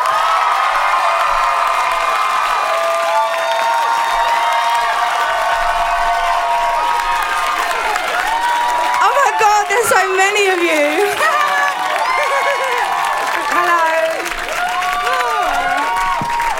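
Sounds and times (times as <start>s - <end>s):
large New York City crowd cheering and screaming for a singer's arrival: 0.0s - 16.5s
laughter: 5.2s - 16.5s
speech: 9.9s - 11.2s.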